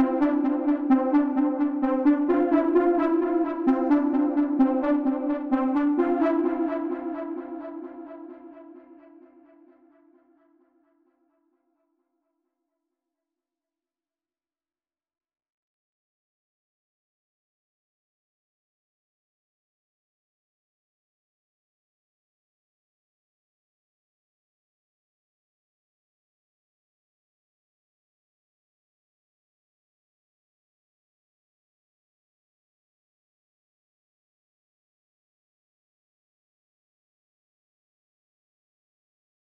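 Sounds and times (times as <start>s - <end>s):
1980s-style synth lead melody loop in F minor at 130 BPM: 0.0s - 9.1s.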